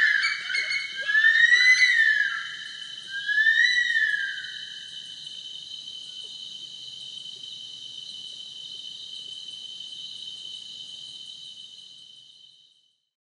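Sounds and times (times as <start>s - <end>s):
Bush stone-curlew Burhinus grallarius wailing call: 0.0s - 4.7s.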